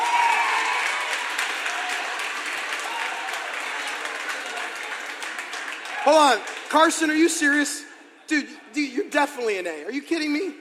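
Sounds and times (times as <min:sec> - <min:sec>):
crowd applause: 0:00.0 - 0:07.4
speech: 0:06.0 - 0:10.5.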